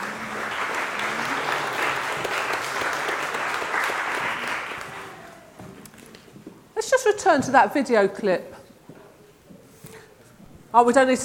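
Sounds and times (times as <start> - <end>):
crowd applauding: 0.0 - 5.6
speech: 7.3 - 8.6, 10.8 - 11.2.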